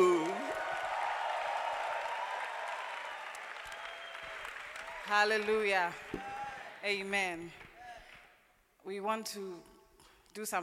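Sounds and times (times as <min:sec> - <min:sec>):
church congregation applause welcoming a woman pastor: 0:00.0 - 0:06.8, 0:07.4 - 0:08.4
speech: 0:05.1 - 0:07.6, 0:08.8 - 0:09.7, 0:10.3 - 0:10.6.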